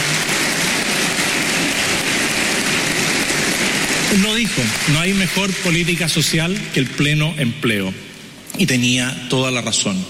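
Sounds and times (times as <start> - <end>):
audience applause: 0.0 - 7.3
speech: 4.1 - 10.0.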